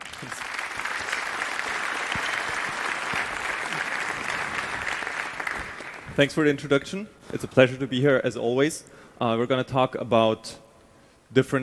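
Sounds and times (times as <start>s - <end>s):
audience applause: 0.0s - 6.2s
speech: 0.2s - 0.5s, 6.2s - 10.6s, 11.3s - 11.6s.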